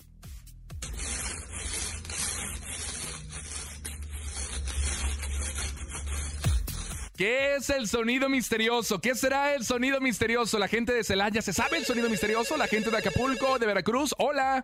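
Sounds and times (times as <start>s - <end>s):
ice being scraped: 0.8s - 7.1s, 11.7s - 13.7s
speech: 7.2s - 14.6s.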